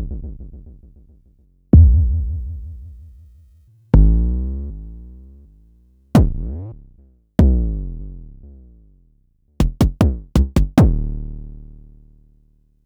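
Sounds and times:
Jomox Airbase990 drum machine: 0:01.7 - 0:04.1, 0:09.6 - 0:11.0.

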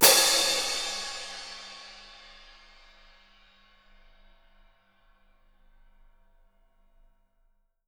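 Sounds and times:
splash cymbal: 0:00.0 - 0:04.2.

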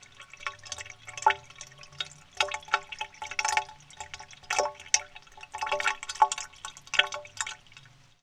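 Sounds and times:
water: 0:00.0 - 0:08.2.

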